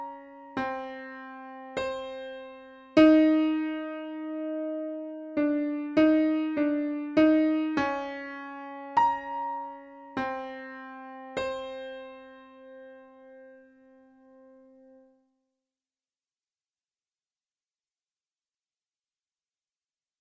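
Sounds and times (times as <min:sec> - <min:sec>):
piano without reverb: 0:00.0 - 0:15.2.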